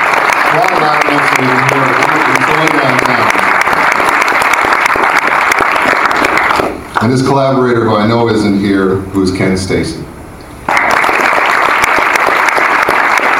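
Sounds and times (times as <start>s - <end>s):
audience applause: 0.0s - 7.1s, 10.7s - 13.3s
speech: 7.0s - 10.1s.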